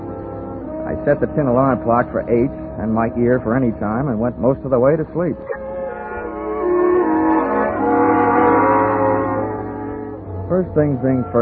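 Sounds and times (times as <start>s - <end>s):
speech: 0.9s - 5.6s, 10.5s - 11.4s
fire engine siren: 5.5s - 11.4s.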